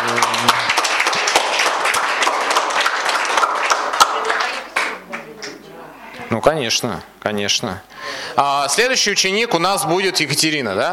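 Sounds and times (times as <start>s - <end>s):
audience applause: 0.0s - 5.3s
speech: 6.3s - 10.9s.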